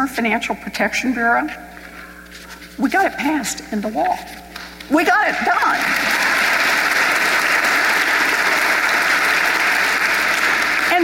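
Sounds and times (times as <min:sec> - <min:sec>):
speech: 0:00.0 - 0:01.7, 0:02.3 - 0:06.2
audience clapping: 0:05.0 - 0:11.0.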